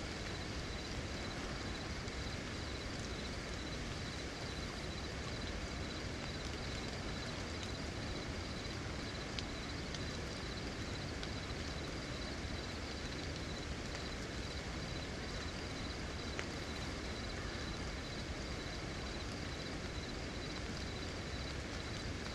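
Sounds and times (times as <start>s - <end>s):
driving rain: 0.0s - 22.3s.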